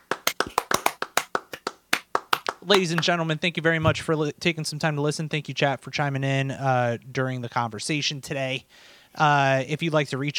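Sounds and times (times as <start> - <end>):
hands clapping: 0.0 - 3.2
speech: 2.6 - 10.3.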